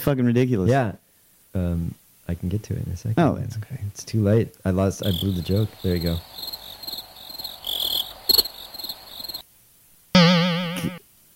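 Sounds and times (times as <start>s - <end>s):
speech: 0.0s - 6.5s
cricket sound effect chirping: 5.0s - 9.4s.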